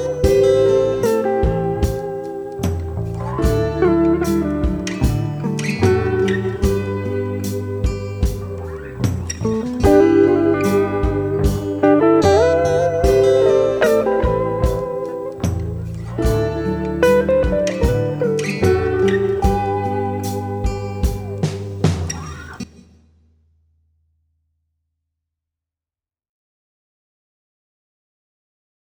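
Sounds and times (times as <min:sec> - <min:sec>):
acoustic guitar track: 0:00.0 - 0:22.7.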